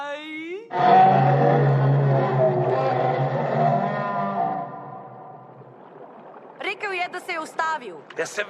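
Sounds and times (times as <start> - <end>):
voice imitating whale speech with a long low wavering moan: 0.7 - 5.4
speech: 8.2 - 8.4.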